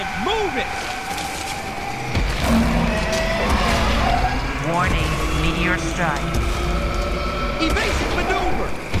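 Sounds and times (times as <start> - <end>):
vehicle tires skidding and squealing losing traction: 0.0 - 8.9
speech: 0.5 - 1.0, 4.7 - 6.7, 7.6 - 8.9.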